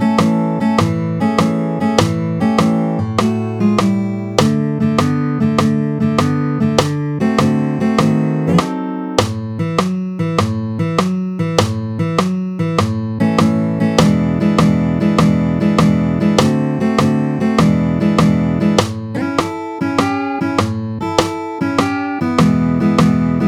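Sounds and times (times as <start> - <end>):
style routine: 0.2 - 23.4.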